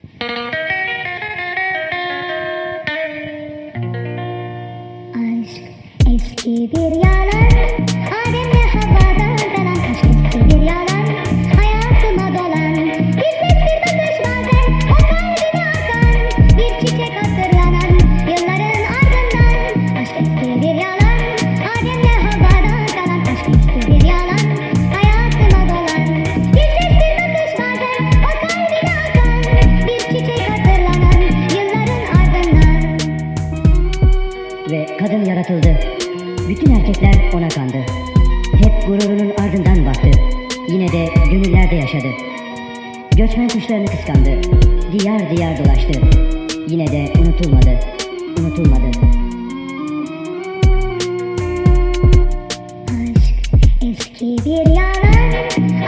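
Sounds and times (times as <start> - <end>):
crazy old electro music: 6.0 - 55.8.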